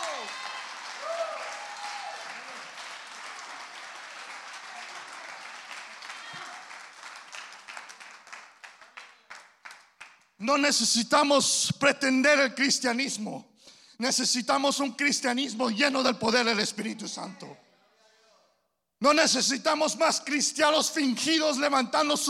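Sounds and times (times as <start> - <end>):
audience applause: 0.0 - 10.2
speech: 10.4 - 17.6, 19.0 - 22.2.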